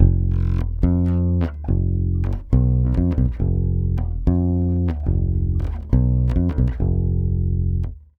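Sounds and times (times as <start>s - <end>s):
bossa nova bass in F diminished: 0.0s - 8.0s.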